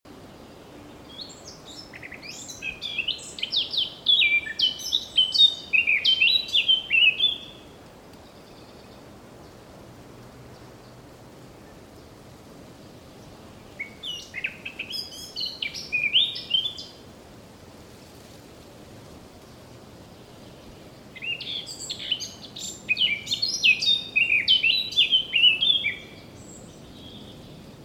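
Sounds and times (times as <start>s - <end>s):
Eurasian blackcap warbling song: 0.2s - 9.6s, 12.8s - 17.0s, 19.5s - 27.8s.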